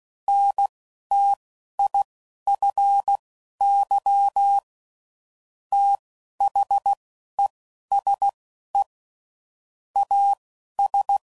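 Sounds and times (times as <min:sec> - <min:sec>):
CW Morse code groups: 0:00.3 - 0:04.7, 0:05.7 - 0:08.9, 0:10.0 - 0:11.3.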